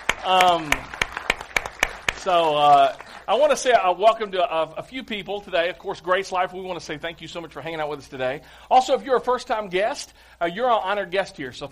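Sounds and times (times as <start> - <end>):
church congregation applauding: 0.0 - 3.3
speech: 0.2 - 0.9, 2.2 - 11.6.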